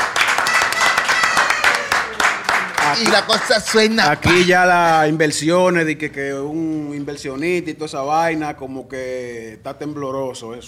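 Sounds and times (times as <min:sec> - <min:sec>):
applause, hands clapping: 0:00.0 - 0:04.5
speech: 0:02.9 - 0:10.6.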